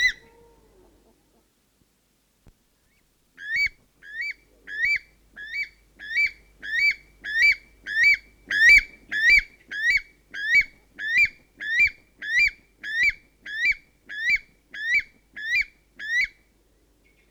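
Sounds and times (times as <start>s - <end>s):
North Island weka song: 3.4s - 16.4s.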